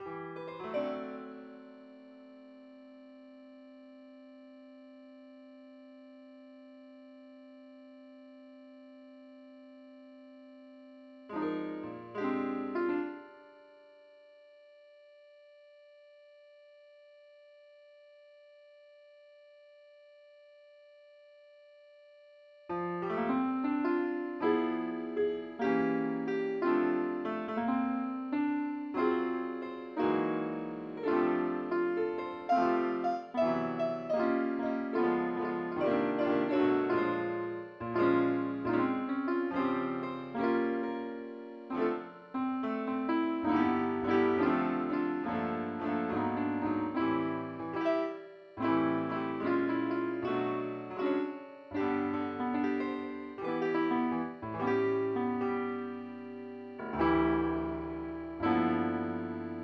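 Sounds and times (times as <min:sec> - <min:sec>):
piano: 0:00.0 - 0:15.5, 0:22.7 - 0:59.6.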